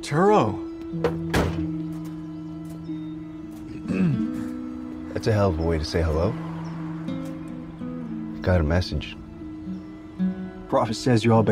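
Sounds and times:
speech: 0.0s - 1.7s, 5.2s - 6.5s, 8.4s - 9.2s, 10.7s - 11.4s
car door shutting: 0.9s - 2.7s
low engine hum: 1.7s - 11.4s.

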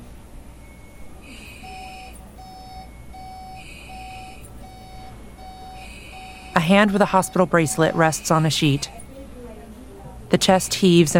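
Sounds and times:
low room hum: 0.0s - 11.1s
chiming tones: 0.6s - 9.1s
heart monitor beeping: 0.6s - 9.1s
speech: 6.6s - 9.0s, 10.3s - 11.1s.

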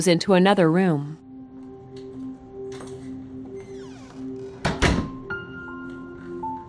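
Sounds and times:
speech: 0.0s - 1.2s
door being unlocked with a key: 2.7s - 5.3s.

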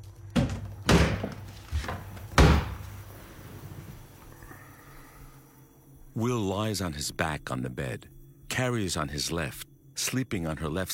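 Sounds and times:
faint steady low hum: 0.0s - 10.9s
door being slammed shut: 0.4s - 3.0s
speech: 6.2s - 10.9s.

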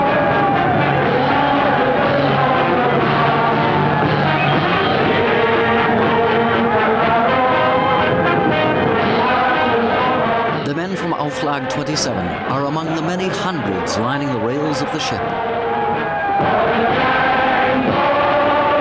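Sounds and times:
enthusiastic crowd cheering: 0.0s - 18.7s
speech: 11.9s - 15.6s.

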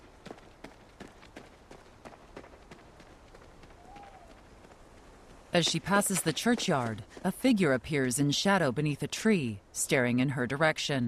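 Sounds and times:
woman's footsteps jogging briskly in darkness: 0.0s - 7.5s
speech: 5.6s - 11.0s.

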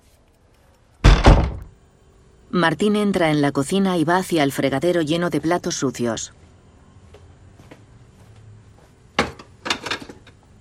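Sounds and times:
door opening with heavy latch and frame clunks: 1.0s - 1.7s
speech: 2.5s - 6.4s.

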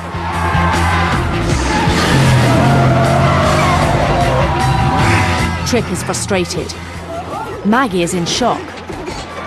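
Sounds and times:
car braking hard and skidding after a race, tires squealing: 0.2s - 7.6s
car engine running: 1.2s - 7.1s
speech: 5.7s - 6.9s, 7.6s - 8.7s.

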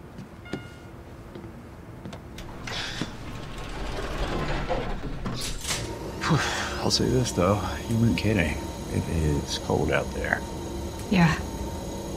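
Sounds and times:
elevator doors sliding: 2.4s - 11.7s
speech: 6.3s - 11.5s.

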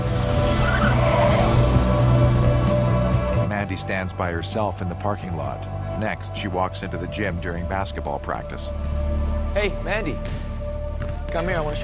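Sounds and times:
tire screech: 0.0s - 2.7s
car engine revving as it drives off: 0.0s - 3.5s
speech: 3.8s - 10.5s, 11.3s - 11.8s.

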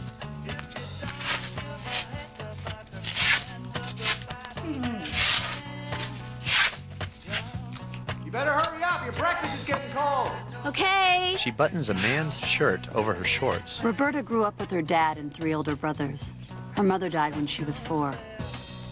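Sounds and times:
masking tape being pulled and ripped: 0.0s - 9.1s
soft music: 0.0s - 18.8s
speech: 10.7s - 18.4s.

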